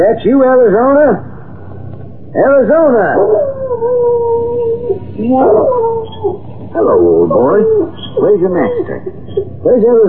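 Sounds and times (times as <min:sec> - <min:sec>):
speech: 0:00.0 - 0:01.3, 0:02.3 - 0:10.0
dog howling: 0:02.9 - 0:10.0.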